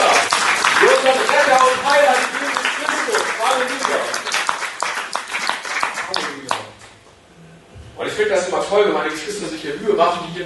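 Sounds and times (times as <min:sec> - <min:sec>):
church congregation rhythmic clapping: 0:00.0 - 0:07.0
speech: 0:08.7 - 0:10.4.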